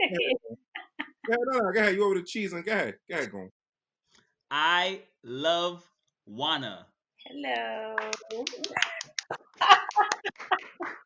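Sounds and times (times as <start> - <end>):
speech: 0.1 - 0.6, 1.3 - 3.6, 4.5 - 11.0
laughter: 1.0 - 3.4, 8.2 - 11.0
person clapping in place of applause button: 8.0 - 11.0.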